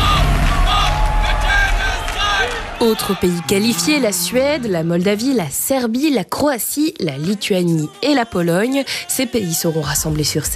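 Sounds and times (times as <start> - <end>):
crowd whistling: 0.0 - 5.2
speech: 2.8 - 10.5.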